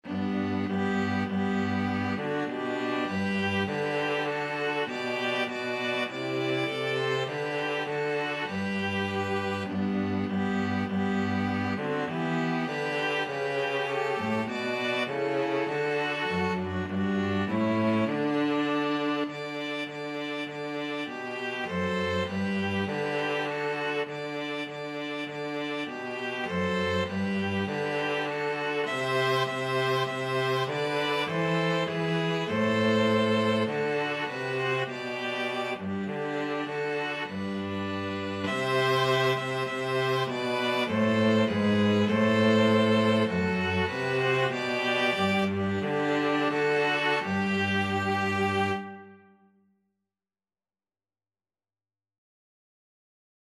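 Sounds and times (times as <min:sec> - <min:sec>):
string trio playing: 0:00.0 - 0:49.3.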